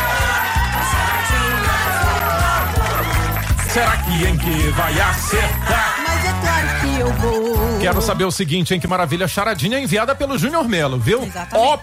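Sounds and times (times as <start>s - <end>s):
studio audience applause and cheering: 0.0s - 7.3s
speech: 3.8s - 11.8s.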